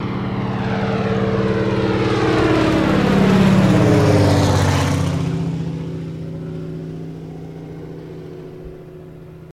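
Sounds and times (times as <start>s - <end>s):
de Havilland Canada single-engine prop plane passing by: 0.0s - 9.5s.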